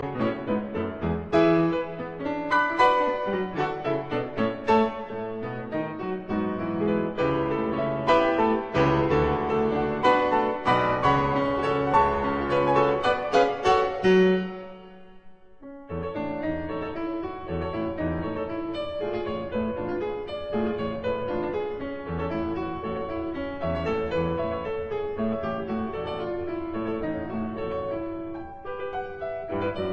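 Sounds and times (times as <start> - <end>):
piano sonata in F sharp minor: 0.0 - 29.9.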